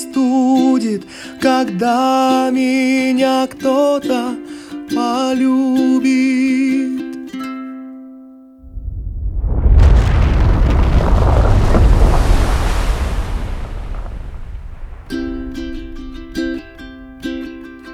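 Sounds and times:
speech: 0:00.1 - 0:07.0
deep roaring volcanic eruption: 0:08.7 - 0:17.4.

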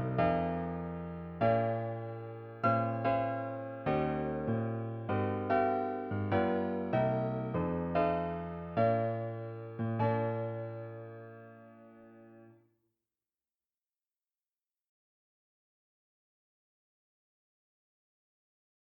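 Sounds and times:
romantic wedding piano music: 0:00.0 - 0:12.5.

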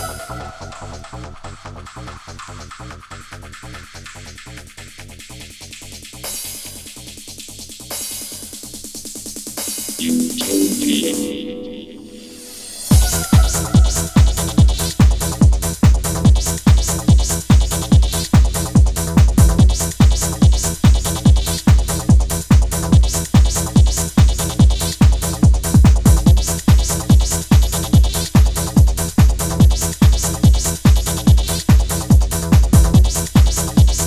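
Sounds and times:
techno dub music: 0:10.0 - 0:34.0.

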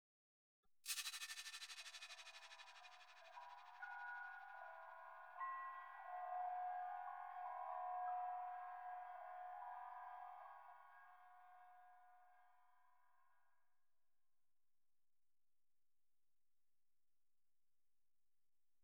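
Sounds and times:
percussion: 0:00.9 - 0:11.9.

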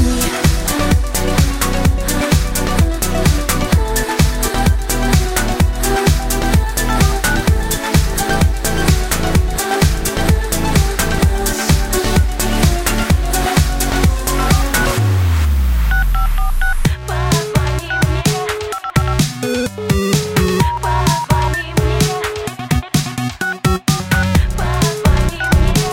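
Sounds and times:
driving rhythmic music track: 0:00.0 - 0:25.9
telephone keypad dialing tones: 0:15.9 - 0:16.9, 0:17.9 - 0:21.6, 0:23.4 - 0:24.3.

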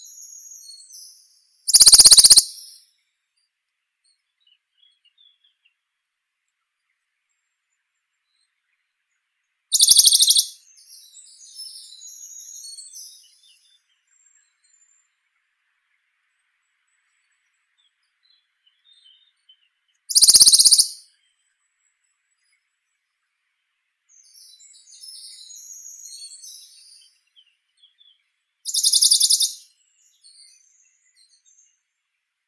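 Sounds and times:
Bonelli's warbler Phylloscopus bonelli: 0:01.7 - 0:02.8, 0:09.7 - 0:10.6, 0:20.1 - 0:21.0, 0:28.7 - 0:29.6.

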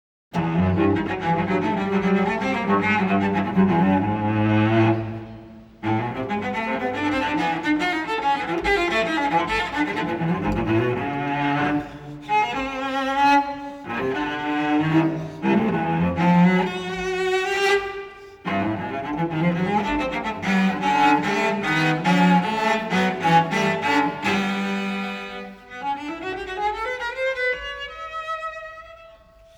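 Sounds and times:
solo cello playing a fast scherzo: 0:00.4 - 0:29.5.

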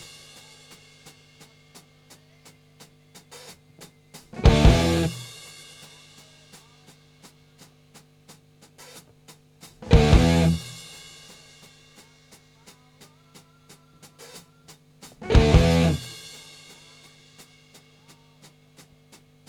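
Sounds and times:
instrumental music: 0:04.1 - 0:06.9, 0:09.8 - 0:18.4.

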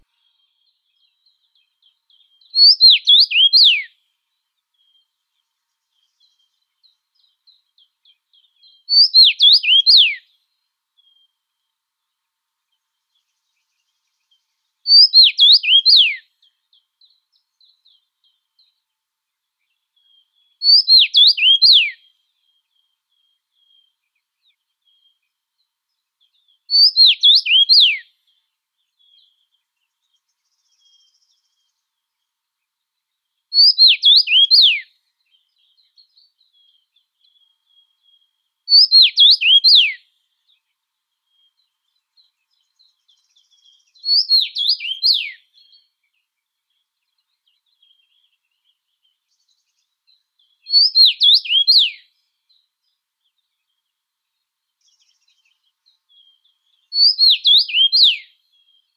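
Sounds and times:
common rosefinch Carpodacus erythrinus: 0:00.0 - 0:03.9, 0:04.8 - 0:10.2, 0:12.7 - 0:18.9, 0:19.6 - 0:25.2, 0:26.2 - 0:28.4, 0:33.5 - 0:58.9.

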